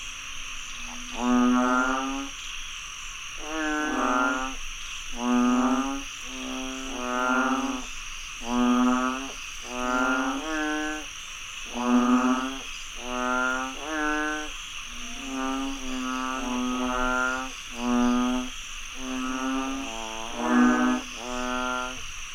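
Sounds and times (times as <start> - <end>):
continuous high insect drone: 0.0 - 22.3
frog chorus of drawn-out harmonic croaks: 0.0 - 22.3.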